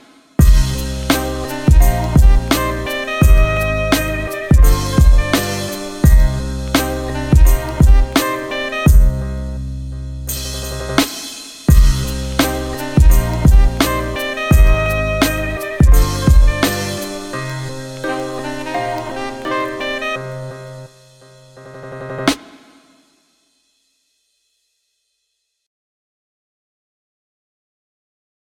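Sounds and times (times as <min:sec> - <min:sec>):
jazz instrumental: 0:00.4 - 0:22.6.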